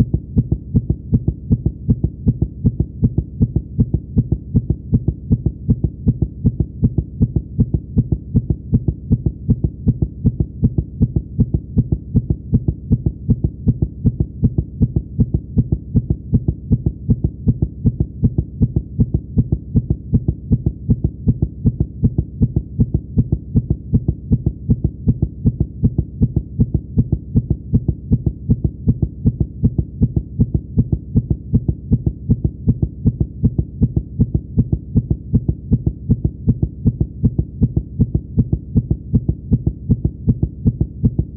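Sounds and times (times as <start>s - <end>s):
heartbeat: 0.0s - 41.3s.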